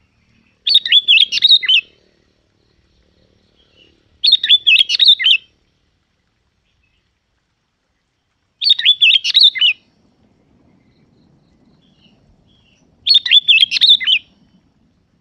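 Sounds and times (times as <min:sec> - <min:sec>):
Yellow-vented bulbul bubbly chirping song: 0:00.0 - 0:05.8, 0:06.5 - 0:15.1.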